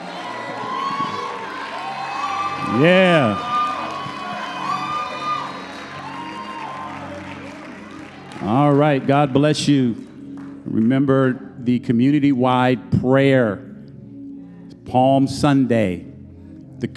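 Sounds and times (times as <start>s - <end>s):
loud rising-and-falling whoop: 0.0s - 7.6s
audience applauding and cheering: 0.0s - 11.0s
speech: 2.7s - 3.5s, 8.5s - 10.1s, 10.8s - 13.7s, 14.9s - 16.1s, 16.8s - 16.9s.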